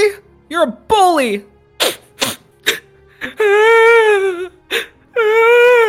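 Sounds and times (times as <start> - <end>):
speech: 0.5 - 1.5
creature crying and whimpering: 1.8 - 5.8.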